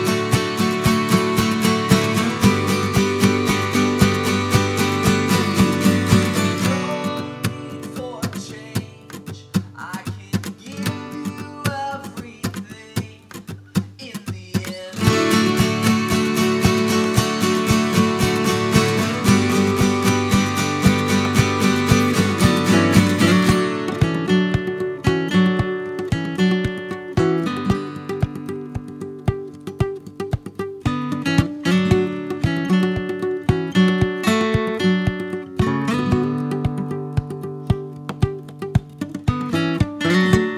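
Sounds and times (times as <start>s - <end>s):
forest acoustic instrument music: 0.0s - 40.5s.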